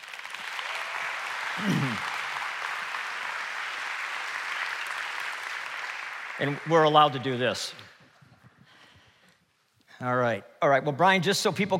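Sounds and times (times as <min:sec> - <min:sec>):
audience applause welcoming a guest speaker: 0:00.0 - 0:07.7
speech: 0:01.6 - 0:02.0, 0:06.4 - 0:07.9, 0:10.0 - 0:11.7.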